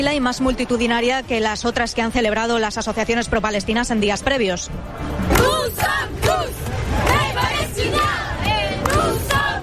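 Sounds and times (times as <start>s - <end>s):
speech: 0.0s - 6.6s
protest crowd chanting slogans: 5.1s - 9.6s.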